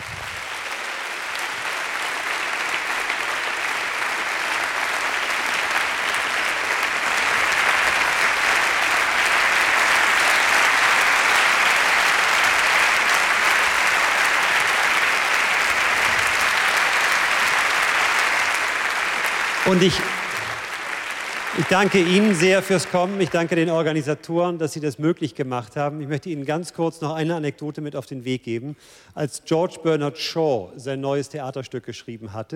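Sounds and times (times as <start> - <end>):
sustained audience applause: 0.0 - 24.0
speech: 19.7 - 20.2, 21.7 - 32.5.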